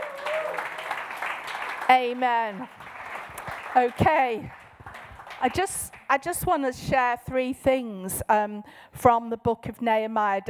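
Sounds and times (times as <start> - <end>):
audience applause: 0.0 - 6.1
speech: 1.9 - 2.9, 3.7 - 4.6, 5.4 - 10.4.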